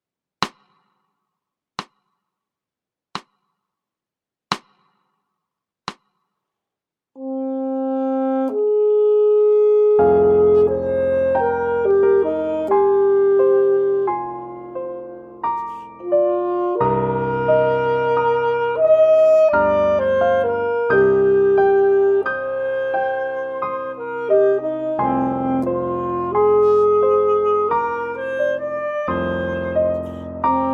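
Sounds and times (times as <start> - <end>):
saxophone theme: 7.2 - 30.7.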